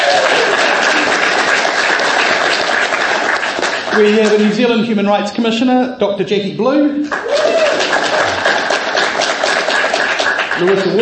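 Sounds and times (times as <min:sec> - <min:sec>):
audience applause: 0:00.0 - 0:04.8, 0:07.1 - 0:11.0
speech: 0:04.0 - 0:07.4, 0:10.6 - 0:11.0.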